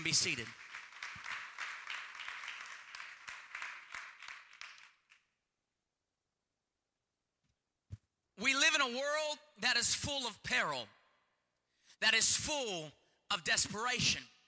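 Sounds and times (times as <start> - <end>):
speech: 0.0 - 0.7, 8.4 - 11.0, 12.0 - 14.3
audience clapping hands: 0.0 - 5.3.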